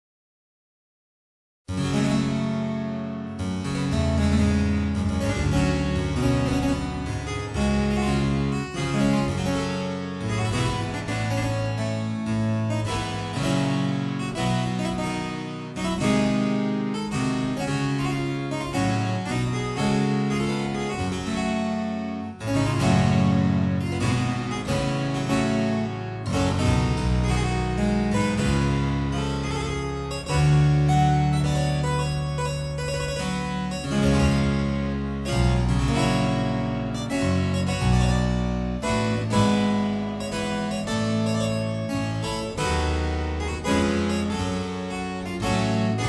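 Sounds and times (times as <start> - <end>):
harpsichord prelude: 1.7 - 46.0.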